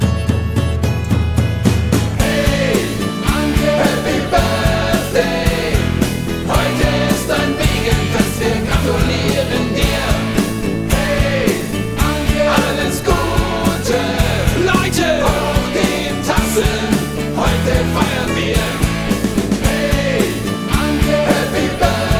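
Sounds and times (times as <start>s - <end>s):
birthday song: 0.2s - 22.1s.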